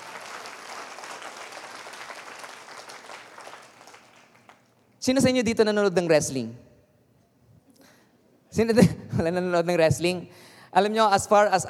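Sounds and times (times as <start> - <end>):
audience applause: 0.0 - 4.7
speech: 5.0 - 6.7, 8.6 - 11.6.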